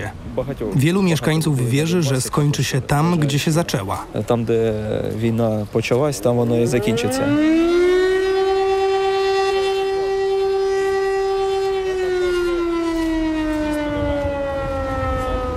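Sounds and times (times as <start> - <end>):
speech: 0.1 - 7.7
air raid siren: 6.5 - 15.5.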